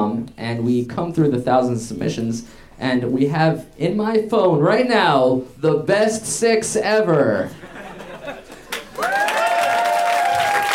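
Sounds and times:
speech: 0.5s - 7.6s
laughter: 7.6s - 9.0s
audience applause: 8.5s - 10.7s.

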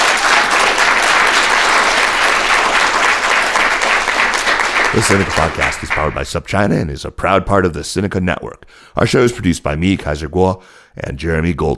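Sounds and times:
audience applause: 0.0s - 6.2s
speech: 5.0s - 11.7s.

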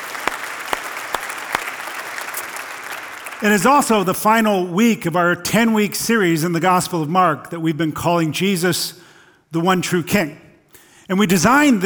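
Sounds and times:
audience clapping: 0.0s - 4.2s
speech: 3.4s - 10.4s, 11.1s - 11.8s.

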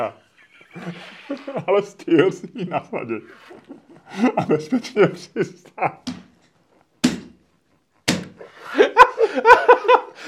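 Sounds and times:
laughter: 0.0s - 6.1s, 8.5s - 10.2s
speech: 0.0s - 6.2s
fist banging on table: 7.0s - 7.4s, 8.1s - 8.4s.

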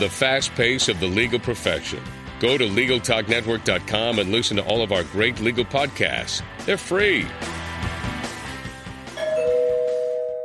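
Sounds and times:
speech: 0.0s - 7.6s
soft rhythmic music bed: 0.0s - 10.4s
doorbell ding-dong: 9.2s - 10.4s.

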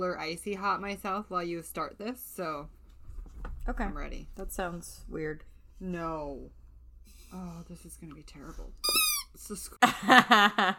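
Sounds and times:
speech: 0.0s - 2.8s, 3.7s - 6.6s, 7.3s - 10.7s
squeaky toy squeaking: 8.8s - 9.4s.

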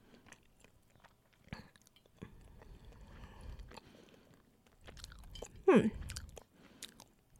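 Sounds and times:
person chewing a crunchy taro snack: 0.0s - 7.3s
speech: 5.7s - 6.0s.

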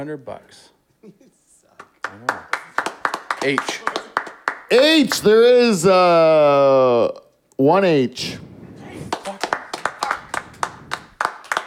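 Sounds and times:
speech: 0.0s - 1.4s, 2.1s - 2.8s, 3.4s - 4.1s, 4.7s - 8.5s
sharp hand claps: 1.8s - 5.2s, 9.1s - 11.6s.

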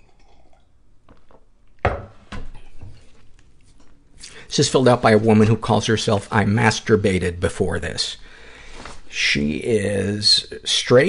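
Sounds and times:
person sipping tea from a cup: 0.0s - 1.5s
speech: 4.6s - 8.3s, 9.2s - 11.0s.

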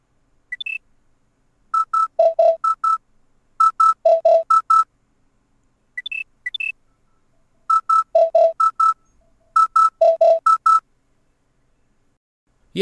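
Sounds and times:
original electronic wake-up alarm with rising chirp and beeping tones: 0.5s - 0.8s, 1.8s - 3.0s, 3.6s - 4.9s, 6.0s - 6.8s, 7.7s - 10.8s.

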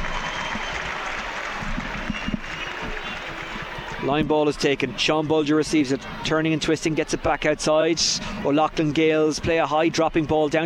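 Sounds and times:
crowd applauding a substituted player: 0.0s - 4.6s
speech: 4.0s - 10.6s.

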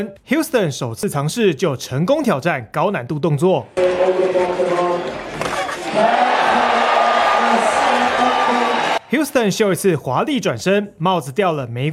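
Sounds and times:
speech: 0.0s - 6.4s, 9.1s - 11.9s
crowd cheering for a skateboarder's trick at a skateboarding contest: 3.8s - 9.2s.

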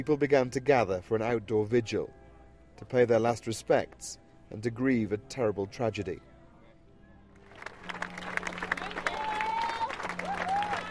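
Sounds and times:
speech: 0.0s - 2.2s, 2.8s - 6.3s
crowd applause at outdoor vigil: 7.4s - 10.8s.

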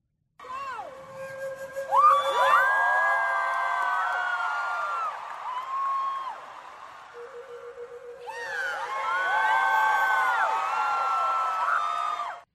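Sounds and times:
sustained flute note: 0.4s - 3.4s, 7.2s - 11.3s
large crowd cheering and screaming: 0.4s - 12.5s.

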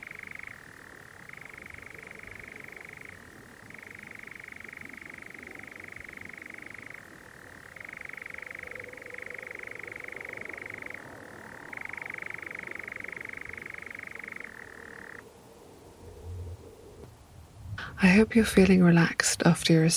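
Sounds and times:
European Nightjar churring: 0.0s - 15.2s
speech: 18.0s - 19.9s.

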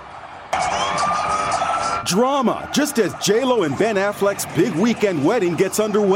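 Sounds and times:
ambulance speeding away with siren blaring: 0.5s - 4.2s
speech: 2.1s - 6.1s.

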